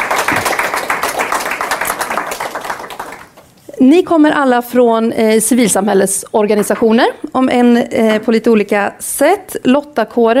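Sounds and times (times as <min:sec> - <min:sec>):
audience applause: 0:00.0 - 0:03.5
speech: 0:03.8 - 0:10.3.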